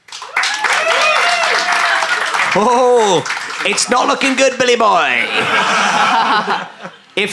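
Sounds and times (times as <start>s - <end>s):
scattered cheers: 0.0s - 4.2s
live audience applause: 0.0s - 6.6s
laughter: 1.3s - 7.3s
speech: 2.6s - 7.3s.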